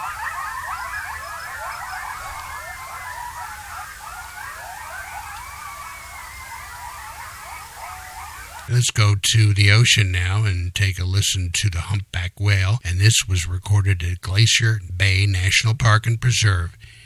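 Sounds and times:
coyotes calling at the Mojave National Preserve in California: 0.0s - 8.7s
speech: 8.7s - 17.0s.

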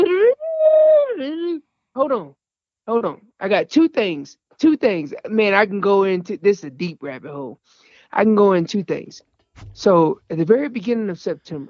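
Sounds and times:
man's voice imitating an elk bugle call: 0.0s - 1.4s
speech: 2.0s - 11.6s.

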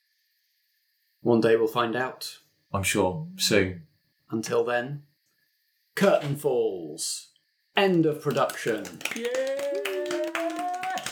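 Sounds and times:
speech: 1.2s - 5.1s, 6.0s - 9.8s
applause: 7.9s - 11.1s.

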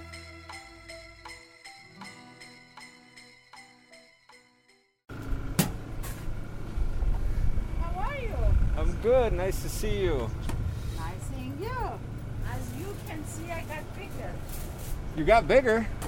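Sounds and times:
bright chiming electronic melody: 0.0s - 5.0s
street traffic at a sidewalk food cart: 5.1s - 16.0s
speech: 9.1s - 10.5s, 15.2s - 16.0s.

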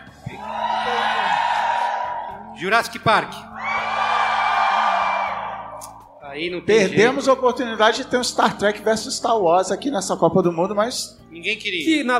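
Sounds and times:
audience cheering to vote: 0.0s - 2.6s, 3.5s - 6.1s
speech: 2.6s - 3.5s, 6.3s - 12.1s.

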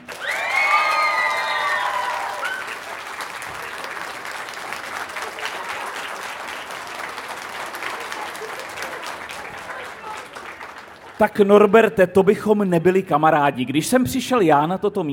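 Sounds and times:
crowd applause: 0.0s - 11.9s
speech: 11.2s - 15.1s.

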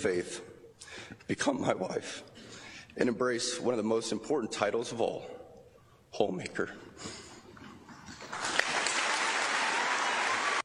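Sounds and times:
speech: 0.0s - 2.3s, 3.0s - 5.4s, 6.1s - 7.2s
audience applause at school commencement: 8.2s - 10.6s.

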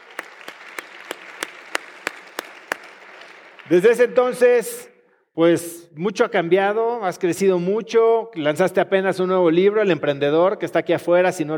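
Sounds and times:
audience applause: 0.0s - 4.1s
speech: 3.7s - 11.5s.

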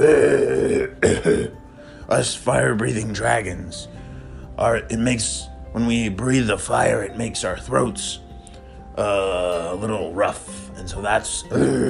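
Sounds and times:
speech: 0.0s - 4.0s, 4.6s - 8.2s, 9.0s - 11.8s
cough: 1.0s - 1.6s.

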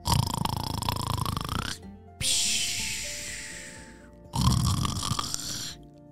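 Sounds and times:
voice imitating cartoon fish snoring with bubbles: 0.0s - 1.8s, 4.4s - 5.8s.

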